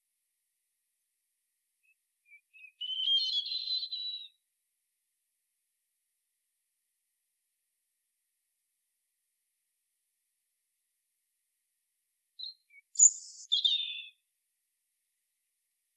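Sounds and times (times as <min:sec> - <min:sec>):
European robin Erithacus rubecula singing: 0:01.8 - 0:04.4, 0:12.4 - 0:14.2.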